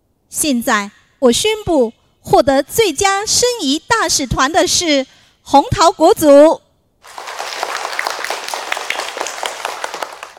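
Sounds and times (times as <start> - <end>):
speech: 0.3 - 6.6
classroom applause as students clap for the winning team: 7.0 - 10.3.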